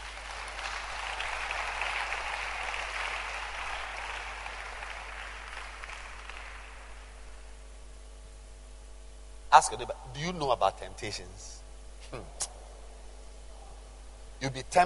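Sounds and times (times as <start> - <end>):
audience clapping hands: 0.0 - 7.2
speech: 9.5 - 12.5, 14.4 - 14.8.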